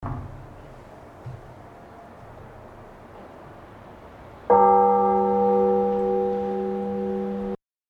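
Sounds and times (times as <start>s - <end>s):
bell ringing: 4.5s - 7.6s.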